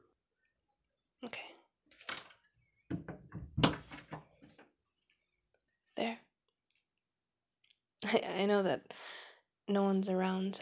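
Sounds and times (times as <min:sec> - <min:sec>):
speech: 0:01.2 - 0:01.5, 0:08.1 - 0:10.5
door being closed: 0:02.9 - 0:04.4.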